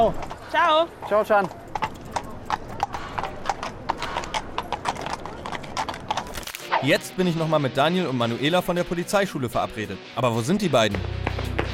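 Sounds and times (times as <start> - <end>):
speech: 0.0 - 1.6, 6.8 - 11.2
horse hooves clip-clopping: 0.0 - 6.6, 11.0 - 11.7.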